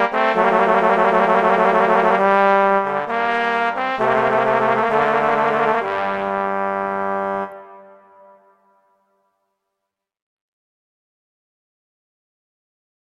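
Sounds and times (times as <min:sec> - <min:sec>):
slow classical piece: 0:00.0 - 0:09.4.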